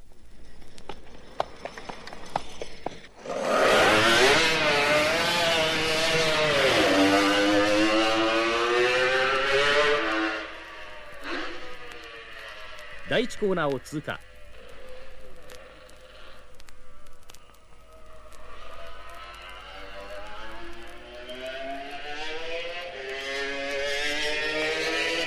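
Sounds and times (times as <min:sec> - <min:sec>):
sparse clicks: 0:00.0 - 0:03.6, 0:10.5 - 0:21.8
Kawasaki H1R racing motorcycle two-stroke engine wailing: 0:01.6 - 0:25.2
speech: 0:13.2 - 0:14.3.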